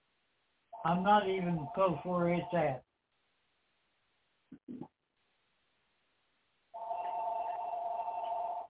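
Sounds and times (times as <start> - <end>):
telephone ringing: 0.7 - 2.8, 6.8 - 8.6
speech: 0.8 - 2.9.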